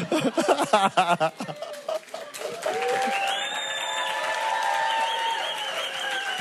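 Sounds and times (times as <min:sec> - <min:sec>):
laughter: 0:00.0 - 0:03.1
crowd voices and cheering: 0:00.0 - 0:06.3
weak round of applause: 0:01.5 - 0:06.3.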